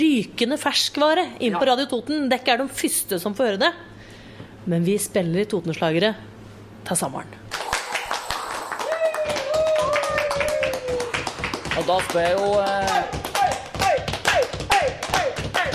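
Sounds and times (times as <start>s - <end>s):
speech: 0.0s - 4.0s, 4.7s - 7.4s, 11.8s - 13.2s
stomping and clapping applause: 7.5s - 15.7s.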